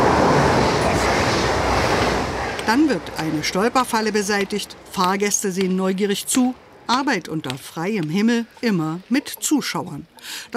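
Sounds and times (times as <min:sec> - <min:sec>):
ICE high-speed train rushing by at a railway station: 0:00.0 - 0:06.9
speech: 0:02.7 - 0:10.5.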